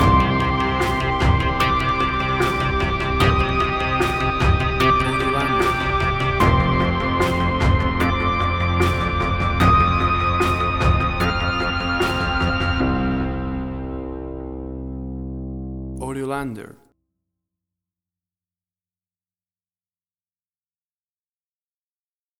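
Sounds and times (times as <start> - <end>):
big atmospheric tension: 0.0 - 15.4.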